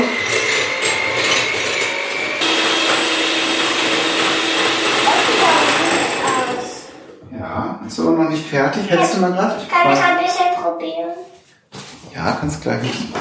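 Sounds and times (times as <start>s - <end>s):
electric kitchen mixer running: 0.0s - 7.2s
speech: 8.5s - 11.2s, 12.2s - 13.1s.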